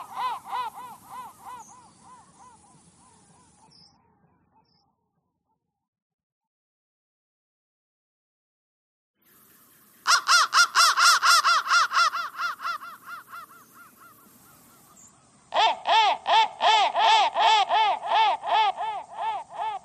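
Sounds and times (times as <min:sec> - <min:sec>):
crow giving fast harsh caws: 0:00.0 - 0:03.6, 0:10.1 - 0:19.8.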